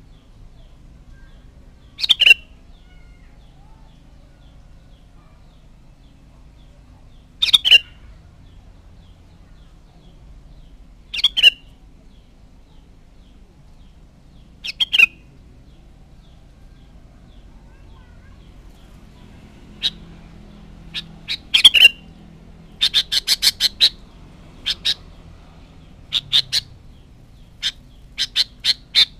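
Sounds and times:
low background hum: 0:00.0 - 0:29.1
sooty-headed bulbul chirping: 0:01.9 - 0:02.6, 0:07.4 - 0:08.0, 0:11.1 - 0:11.8, 0:14.6 - 0:15.3, 0:20.9 - 0:25.2, 0:25.8 - 0:29.1.

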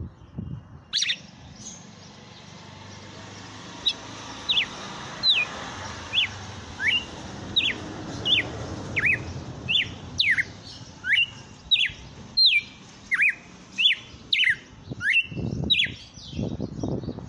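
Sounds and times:
female red-cowled cardinal singing: 0:00.0 - 0:17.2.

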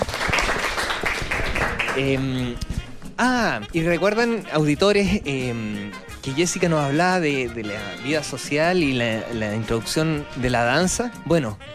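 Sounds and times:
applause: 0:00.0 - 0:02.6
speech: 0:02.0 - 0:11.7.

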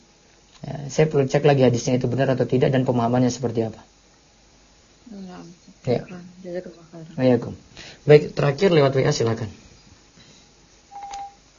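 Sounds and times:
faint hiss: 0:00.0 - 0:11.5
speech: 0:00.9 - 0:04.0, 0:05.1 - 0:09.6
electronic telephone tone signalling an incoming call: 0:10.9 - 0:11.4.

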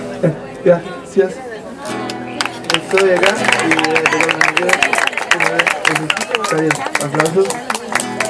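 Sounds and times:
speech: 0:00.2 - 0:01.5, 0:02.9 - 0:07.7
audience applause: 0:02.4 - 0:08.2.

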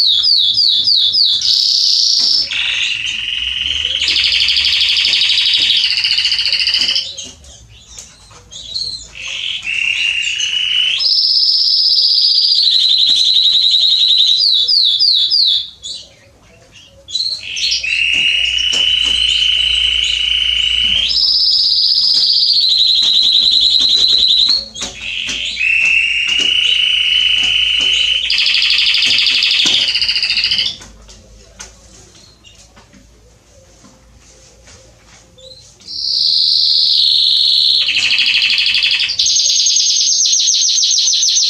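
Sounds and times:
canary song: 0:00.0 - 0:41.4.

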